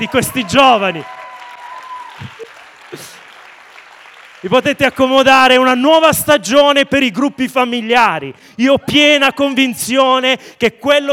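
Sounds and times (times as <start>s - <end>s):
speech: 0.0s - 1.2s, 4.4s - 11.1s
congregation applause inside a church in Modugno: 0.0s - 6.1s.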